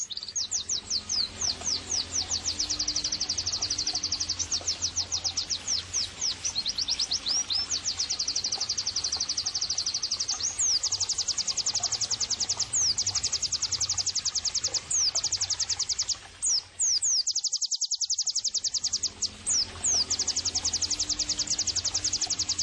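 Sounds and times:
Oriental white-eye song: 0:00.2 - 0:22.6.

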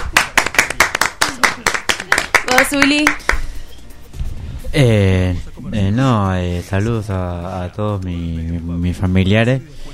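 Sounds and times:
applause: 0:00.0 - 0:03.5
speech: 0:02.5 - 0:03.2, 0:04.7 - 0:05.4, 0:06.0 - 0:09.9.

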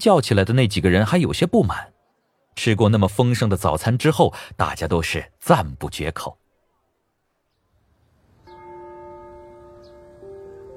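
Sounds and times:
speech: 0:00.0 - 0:02.0, 0:02.6 - 0:06.4
school bell ringing for the start of class and assembly: 0:08.5 - 0:10.7.

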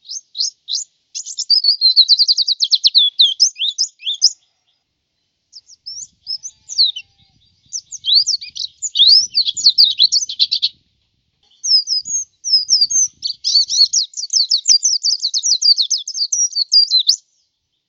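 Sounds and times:
white-eye twittering song: 0:00.0 - 0:04.5, 0:05.5 - 0:10.8, 0:11.4 - 0:17.2.

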